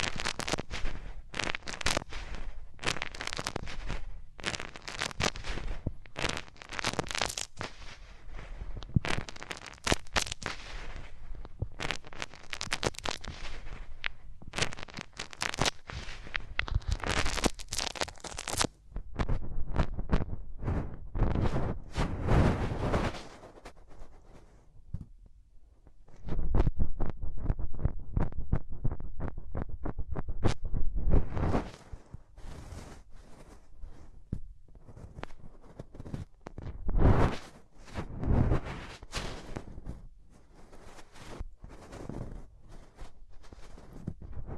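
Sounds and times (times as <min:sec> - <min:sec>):
hands rubbing over the ears: 0:00.0 - 0:09.8, 0:10.4 - 0:19.3, 0:30.4 - 0:36.2, 0:37.0 - 0:44.5
scattered rustles and taps: 0:00.0 - 0:44.5.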